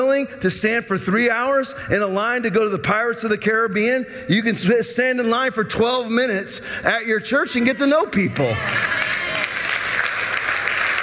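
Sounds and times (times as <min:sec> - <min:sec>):
speech: 0:00.0 - 0:09.2
audience clapping: 0:08.4 - 0:11.0.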